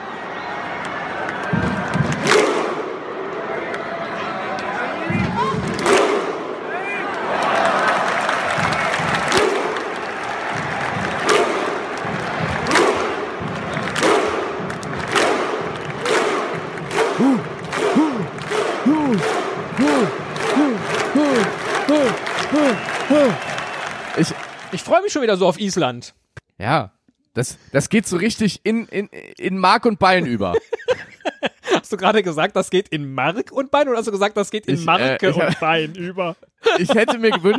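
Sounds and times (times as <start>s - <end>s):
large crowd roaring and cheering: 0.0s - 25.2s
rhythmic unison clapping: 0.8s - 2.9s, 5.7s - 24.9s
deep shouted grunts: 17.0s - 23.6s
laughter: 17.2s - 23.4s, 30.2s - 32.0s, 34.7s - 37.5s
speech: 24.2s - 37.5s.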